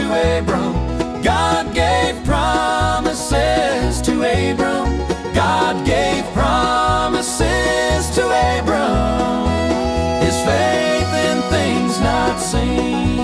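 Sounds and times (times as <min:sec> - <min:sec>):
banjo: 0:00.0 - 0:13.2
bluegrass music: 0:00.0 - 0:13.2
piano: 0:00.0 - 0:13.2.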